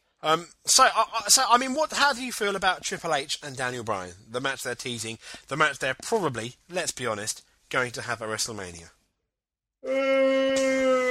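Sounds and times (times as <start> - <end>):
speech: 0.2 - 9.0, 9.8 - 10.7
person yawning: 9.8 - 11.0.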